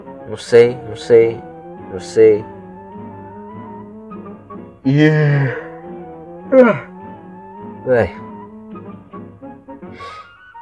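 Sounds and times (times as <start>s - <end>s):
speech: 0.3s - 2.5s, 4.8s - 5.6s, 6.5s - 6.9s, 7.8s - 8.2s
person yawning: 4.9s - 5.7s, 6.5s - 6.9s.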